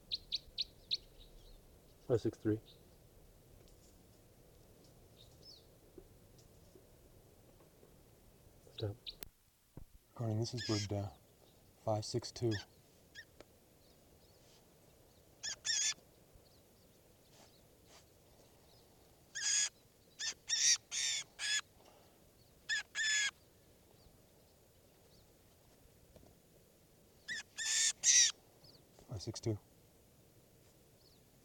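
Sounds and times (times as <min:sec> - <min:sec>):
recorded bird call: 0:00.0 - 0:03.0, 0:10.2 - 0:14.6, 0:15.3 - 0:25.3, 0:27.2 - 0:29.6
faint steady hiss: 0:00.0 - 0:31.4
speech: 0:02.1 - 0:02.8, 0:08.8 - 0:09.2, 0:10.2 - 0:11.2, 0:11.9 - 0:12.7.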